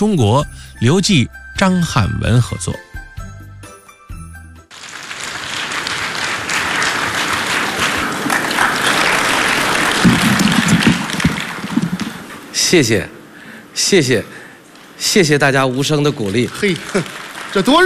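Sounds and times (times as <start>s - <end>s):
speech: 0.0s - 2.9s, 12.7s - 13.2s, 13.8s - 14.4s, 15.0s - 17.8s
audience applauding: 4.7s - 12.5s, 15.6s - 17.8s.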